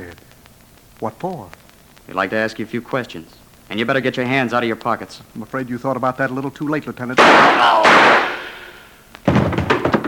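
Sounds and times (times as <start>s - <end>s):
speech: 1.0s - 8.3s
gunshot fired at a police officer: 7.2s - 10.0s.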